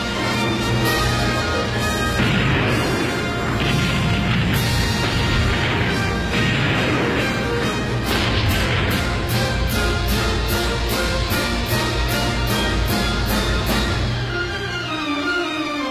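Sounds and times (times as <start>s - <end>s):
orchestral recording with real cannon fire: 0.0s - 15.8s
real cannon fire: 1.8s - 11.5s.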